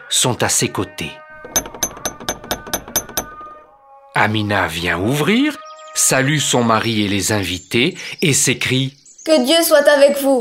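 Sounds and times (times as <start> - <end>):
speech: 0.1 - 1.2, 4.2 - 10.3
knocking on a door: 1.4 - 3.6.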